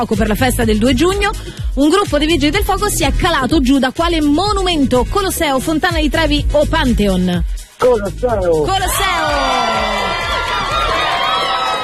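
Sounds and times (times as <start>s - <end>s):
speech: 0.0s - 9.6s
crowd cheering and shouting for a radio quiz winner: 8.8s - 11.8s.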